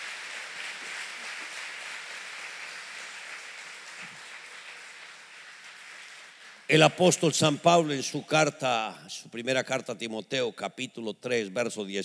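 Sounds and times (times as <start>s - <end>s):
audience applause: 0.0s - 7.9s
speech: 6.7s - 12.0s.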